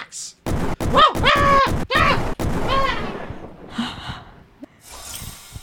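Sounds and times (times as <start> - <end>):
video game gunshots: 0.5 - 3.8
wailing excited vocal sounds: 0.9 - 3.2.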